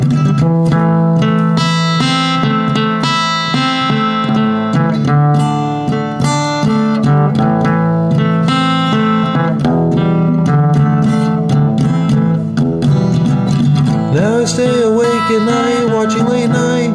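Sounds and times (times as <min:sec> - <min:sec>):
acoustic music: 0:00.0 - 0:16.9.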